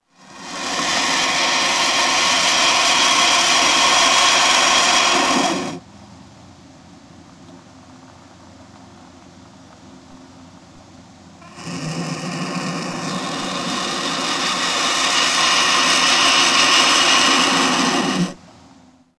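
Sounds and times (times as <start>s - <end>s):
turkey vulture: 0.0s - 5.9s, 11.4s - 18.4s.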